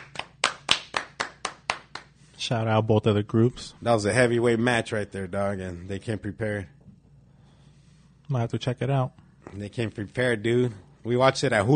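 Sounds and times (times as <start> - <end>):
round of applause, hands clapping: 0.0 - 2.2
speech: 2.4 - 6.8, 8.3 - 11.7.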